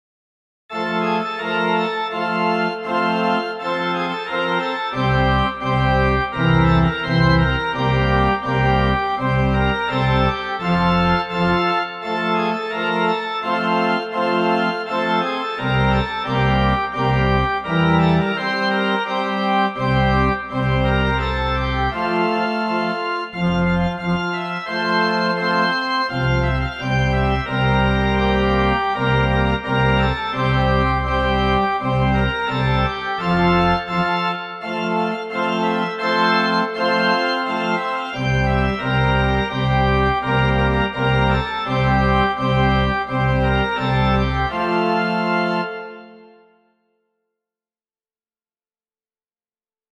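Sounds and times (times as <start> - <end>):
MIDI music: 0.8 - 46.5.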